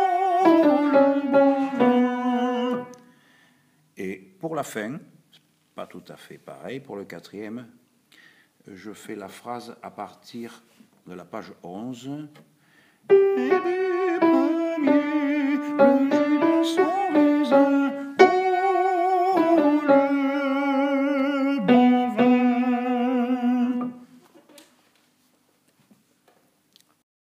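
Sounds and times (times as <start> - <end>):
tenor singing: 0.0 - 3.1, 13.1 - 24.2.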